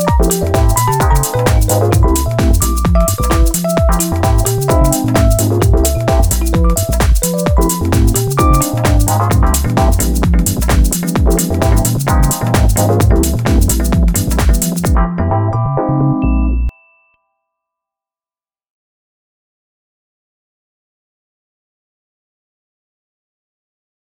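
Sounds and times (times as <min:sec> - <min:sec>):
lounge house music: 0:00.0 - 0:16.7.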